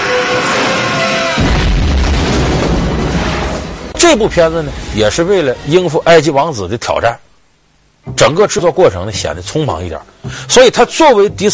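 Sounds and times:
explosion: 0.0s - 5.2s
speech: 4.0s - 7.2s, 8.1s - 11.5s.

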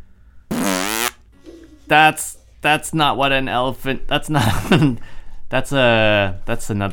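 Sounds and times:
fart-like raspberry noise: 0.5s - 1.2s
speech: 1.9s - 6.9s.

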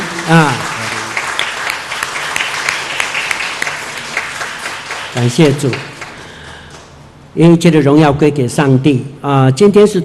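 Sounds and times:
warm audience applause: 0.0s - 6.8s
speech: 0.3s - 0.7s, 5.2s - 5.9s, 7.4s - 10.0s.

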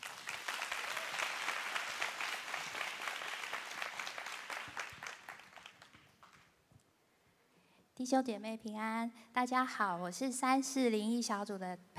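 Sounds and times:
audience applause: 0.0s - 6.5s
speech: 8.0s - 11.9s.

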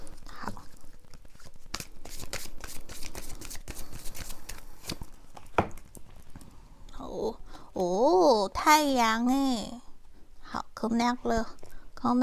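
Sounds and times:
oracle cards being shuffled and drawn: 0.6s - 5.9s
speech: 8.7s - 9.8s, 10.8s - 12.2s.

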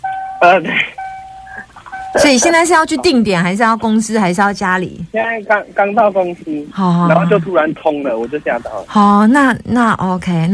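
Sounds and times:
steady high electronic tone in a car: 0.0s - 3.7s
speech: 0.4s - 1.0s, 2.1s - 10.5s.

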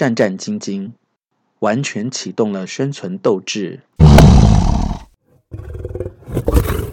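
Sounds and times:
speech: 0.0s - 1.0s, 1.6s - 4.4s
tiger roaring: 4.0s - 6.9s.

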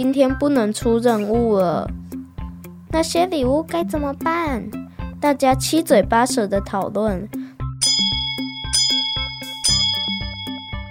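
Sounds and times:
speech: 0.0s - 2.2s, 2.9s - 7.4s
little train's bell ringing: 7.8s - 10.9s.

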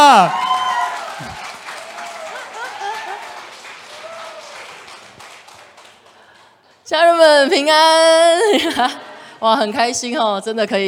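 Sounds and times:
audience applause: 0.0s - 6.6s
speech: 0.2s - 0.4s, 6.9s - 10.8s.

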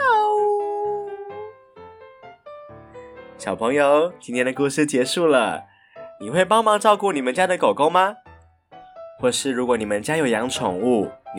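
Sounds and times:
person imitating a cat meow: 0.0s - 1.6s
speech: 3.4s - 8.2s, 9.2s - 11.3s.

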